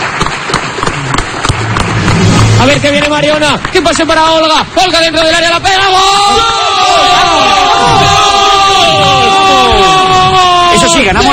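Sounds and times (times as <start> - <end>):
applause: 0.0 - 4.4
speech: 2.6 - 9.9, 10.9 - 11.3.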